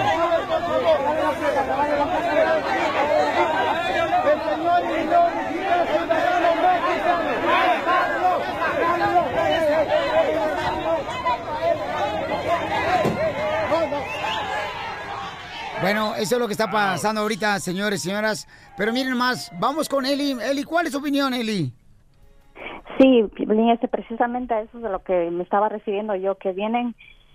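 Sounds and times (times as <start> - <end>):
migrant caravan crowd scuffling with police: 0.0 - 21.6
speech: 15.8 - 21.8, 23.0 - 27.1.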